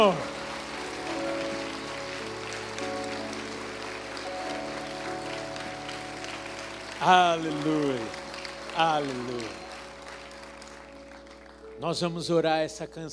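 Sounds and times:
speech: 0.0 - 0.3, 7.0 - 8.2, 8.8 - 9.6, 11.8 - 13.1
audience applauding: 0.0 - 12.2.

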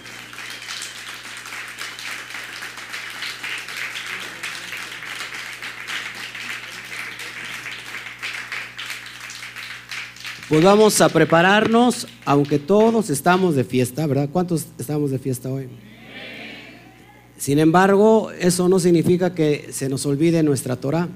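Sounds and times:
audience applause: 0.0 - 13.0
speech: 10.5 - 15.9, 17.4 - 21.1.

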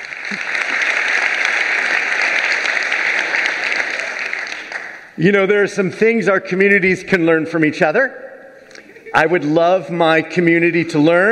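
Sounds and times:
audience applauding to welcome a rabbi as speaker: 0.0 - 5.2
speech: 5.2 - 8.2, 9.1 - 11.3.

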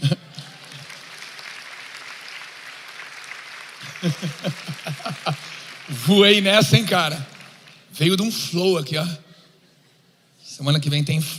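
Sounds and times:
applause: 0.0 - 8.3
laughter: 3.8 - 6.1
speech: 4.0 - 7.3, 8.0 - 9.2, 10.6 - 11.3.

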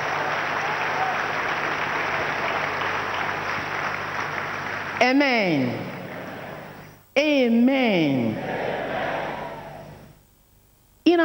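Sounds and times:
audience clapping: 0.0 - 6.9
speech: 5.0 - 5.9, 7.2 - 8.7.

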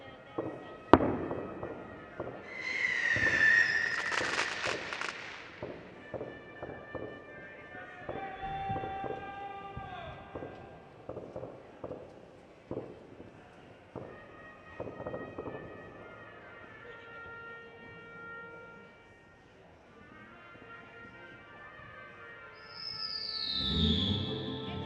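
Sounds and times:
firecracker bangs on New Year's night in El Borge: 0.3 - 16.4
whistling rockets: 0.5 - 12.0, 12.8 - 16.4, 22.4 - 24.7
rumbling barrage of explosions: 1.0 - 6.3.

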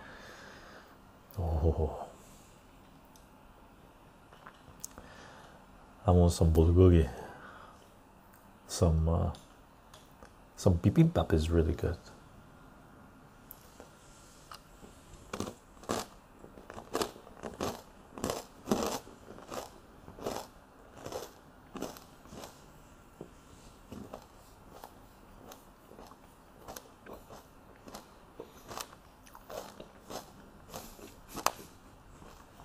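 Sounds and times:
speech: 1.6 - 2.1, 6.1 - 7.2, 8.7 - 9.4, 10.6 - 12.2
biting and chewing a tomato: 15.3 - 22.6, 24.0 - 32.6.

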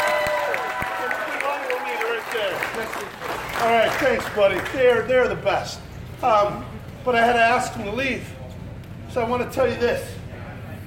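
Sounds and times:
audience applause: 0.0 - 5.1
speech: 2.8 - 8.4, 9.1 - 10.2.

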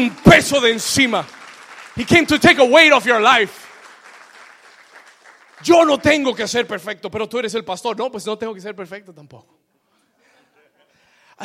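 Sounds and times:
speech: 0.0 - 1.4, 2.0 - 3.6, 5.6 - 9.6
audience applause: 0.0 - 6.4.

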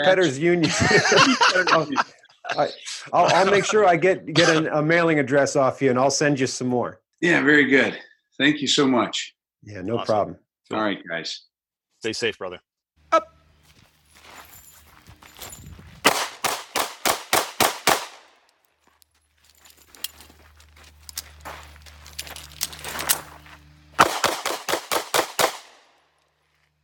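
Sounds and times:
laughter: 0.0 - 4.7
speech: 0.0 - 13.3
handgun gunshots: 16.1 - 18.3, 24.0 - 25.8.

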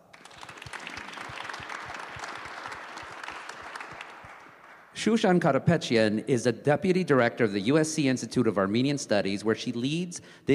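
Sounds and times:
crowd applauding: 0.0 - 5.0
speech: 5.0 - 10.5.

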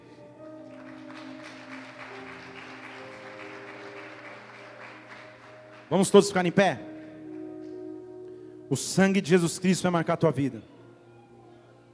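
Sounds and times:
audience applause: 0.6 - 7.1
speech: 5.9 - 6.9, 8.7 - 10.8.

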